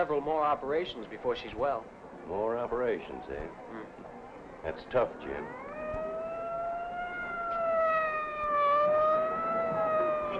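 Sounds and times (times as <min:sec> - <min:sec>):
speech: 0:00.0 - 0:05.6
fire engine siren wailing: 0:05.2 - 0:10.3.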